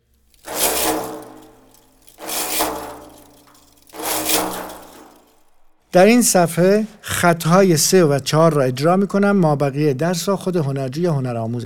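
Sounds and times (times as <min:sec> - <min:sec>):
brushing strokes on the skin of a daf frame drum: 0:00.3 - 0:05.6
speech: 0:06.0 - 0:11.6.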